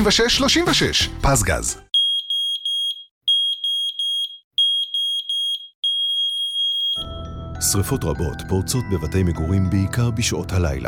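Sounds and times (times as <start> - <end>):
speech: 0.0 - 1.9, 7.6 - 10.8
smoke alarm beeping: 1.9 - 7.1.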